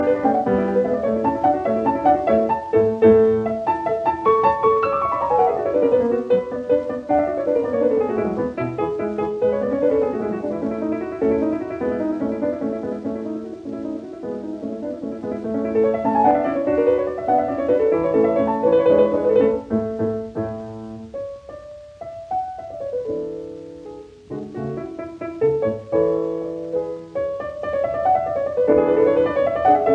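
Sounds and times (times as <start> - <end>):
piano sonata in D major: 0.0 - 29.9.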